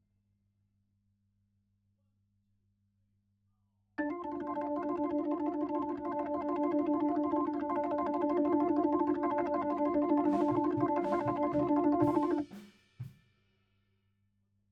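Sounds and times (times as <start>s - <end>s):
Hammond organ: 4.0s - 12.4s.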